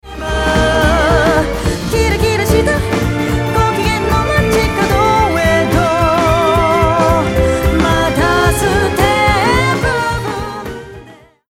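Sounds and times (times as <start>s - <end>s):
strings: 0.0s - 11.3s.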